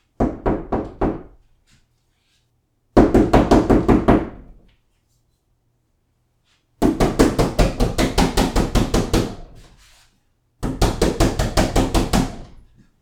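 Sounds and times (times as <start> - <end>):
knocking on door: 0.2 - 1.4, 3.0 - 4.6, 6.8 - 9.4, 10.6 - 12.6.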